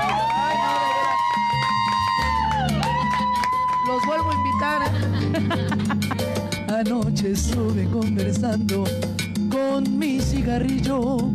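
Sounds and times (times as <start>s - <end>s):
live audience cheering and clapping: 0.0s - 6.2s
laughter: 4.6s - 6.4s
speech: 4.9s - 6.2s, 6.8s - 11.3s.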